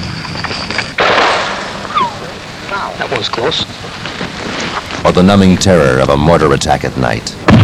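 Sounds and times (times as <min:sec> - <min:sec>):
sniper rifle shot in a war setting: 0:01.0 - 0:01.7, 0:07.5 - 0:07.6
speech: 0:03.0 - 0:04.0, 0:04.8 - 0:07.6.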